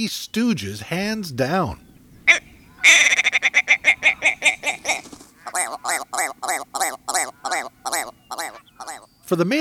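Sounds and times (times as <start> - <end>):
speech: 0.0 - 3.1, 4.9 - 9.5
willow ptarmigan crowing: 2.3 - 9.0.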